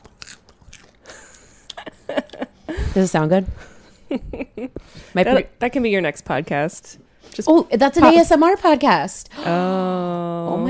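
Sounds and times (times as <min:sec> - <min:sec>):
popcorn being moved and crunched: 0:00.0 - 0:01.4
speech: 0:03.0 - 0:10.6.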